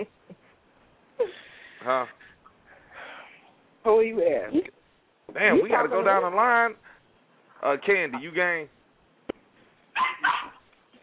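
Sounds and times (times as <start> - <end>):
speech: 1.8 - 2.2, 3.8 - 6.9, 7.6 - 8.8
dog barking: 10.0 - 10.6.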